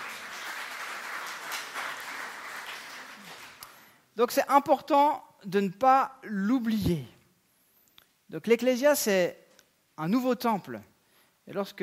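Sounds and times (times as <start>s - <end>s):
audience applause: 0.0s - 3.8s
speech: 4.2s - 7.2s, 8.3s - 9.4s, 10.0s - 10.9s, 11.5s - 11.8s.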